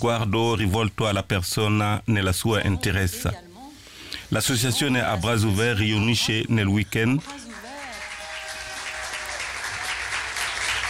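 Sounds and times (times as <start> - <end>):
speech: 0.0 - 3.5, 4.3 - 7.4
audience applause: 7.2 - 10.8.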